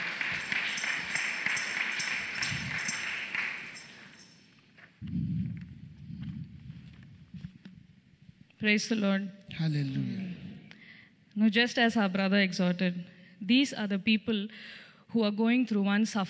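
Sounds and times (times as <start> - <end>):
crowd clapping: 0.0 - 4.4
speech: 8.6 - 10.3, 11.4 - 16.2.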